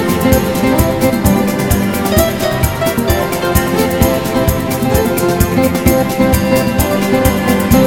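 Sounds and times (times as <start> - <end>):
fast bossa nova music: 0.0 - 7.8.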